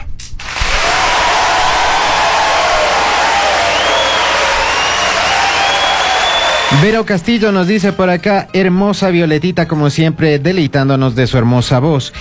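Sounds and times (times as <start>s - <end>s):
audience applause: 0.4s - 7.0s
speech: 6.7s - 12.1s.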